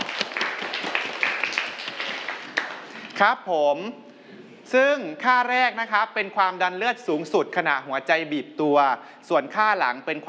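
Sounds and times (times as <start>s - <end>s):
students clapping: 0.0s - 3.2s
speech: 3.2s - 4.1s, 4.7s - 10.2s.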